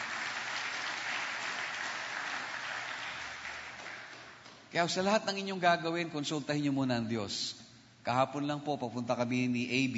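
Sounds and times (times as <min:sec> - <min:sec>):
church congregation applauding: 0:00.0 - 0:04.7
speech: 0:04.7 - 0:09.9.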